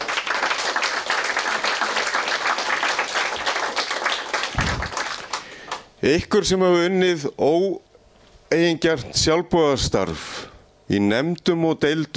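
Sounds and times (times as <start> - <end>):
applause for staff at an association's annual meeting: 0.0 - 5.9
low thuds: 4.6 - 4.9
speech: 6.0 - 7.9, 8.5 - 12.1.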